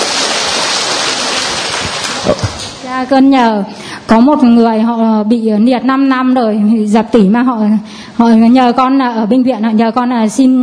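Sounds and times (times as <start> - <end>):
audience applause: 0.0 - 2.8
speech: 2.2 - 10.6.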